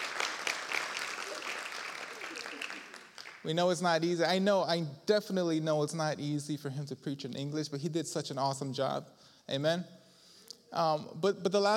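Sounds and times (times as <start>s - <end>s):
audience applause: 0.0s - 3.5s
speech: 3.4s - 10.0s, 10.7s - 11.7s.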